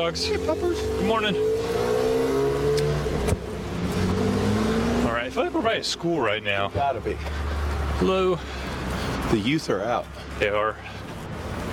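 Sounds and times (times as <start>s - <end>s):
speech: 0.0s - 1.9s, 5.2s - 8.6s, 9.3s - 11.0s
car driving past on street: 0.7s - 5.4s.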